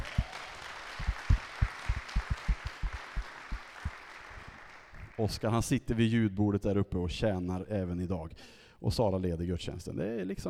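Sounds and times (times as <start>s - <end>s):
audience applause: 0.0s - 5.3s
speech: 5.2s - 10.4s.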